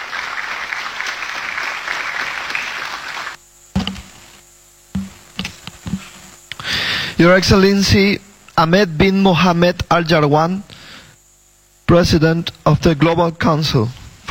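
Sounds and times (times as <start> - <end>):
audience applause: 0.0 - 3.4
scattered thumps: 3.7 - 6.3
speech: 7.2 - 10.7, 11.9 - 14.2.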